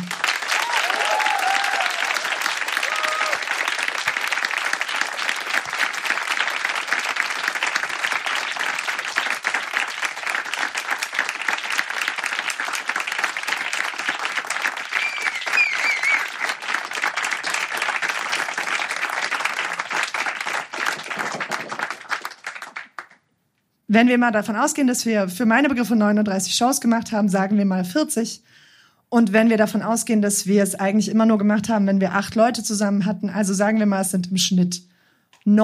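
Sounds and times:
audience applause: 0.0 - 23.2
speech: 23.9 - 28.5, 29.1 - 34.9.

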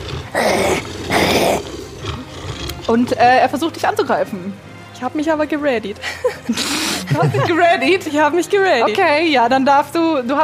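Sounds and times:
monstrous two-headed dog snarling and growling: 0.0 - 4.2
speech: 2.9 - 10.4
laughter: 6.0 - 8.2.

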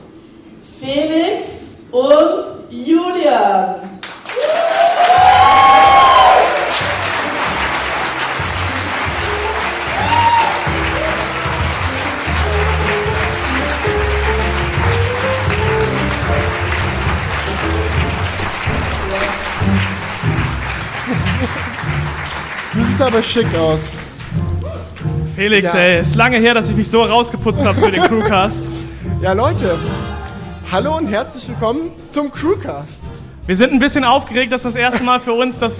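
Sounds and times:
speech: 0.8 - 4.7, 23.0 - 24.0, 25.4 - 30.1, 30.7 - 35.7
audience applause: 4.0 - 25.1
laughter: 20.8 - 23.2, 27.5 - 28.8.

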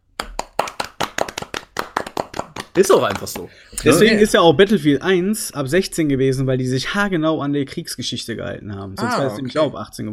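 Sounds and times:
applause: 0.2 - 3.5
speech: 2.8 - 10.1.

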